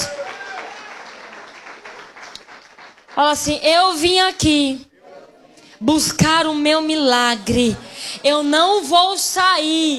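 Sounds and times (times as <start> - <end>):
audience clapping hands: 0.0 - 3.6
speech: 3.2 - 4.9, 5.8 - 9.9.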